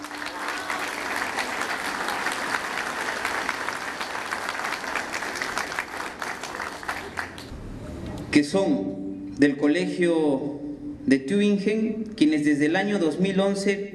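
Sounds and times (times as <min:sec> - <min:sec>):
audience applause: 0:00.0 - 0:07.5
speech: 0:08.4 - 0:13.9.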